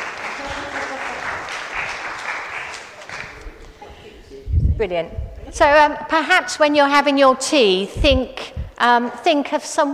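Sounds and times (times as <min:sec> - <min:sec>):
group clapping: 0:00.0 - 0:03.8
speech: 0:04.8 - 0:09.9.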